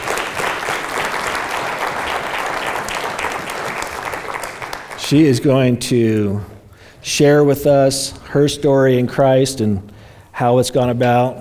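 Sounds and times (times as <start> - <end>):
audience applause welcoming speaker: 0.0 - 5.4
speech: 5.1 - 11.3.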